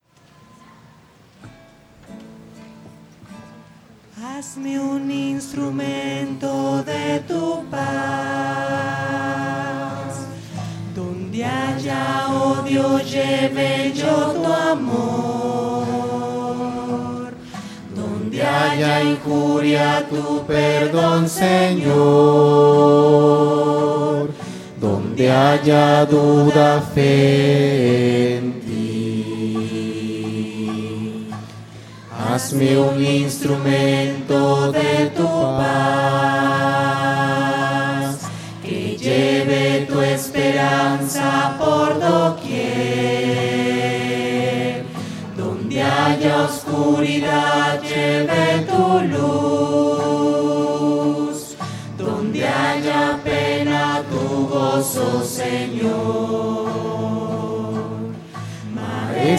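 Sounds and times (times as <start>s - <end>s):
voices singing a hymn: 4.2s - 59.3s.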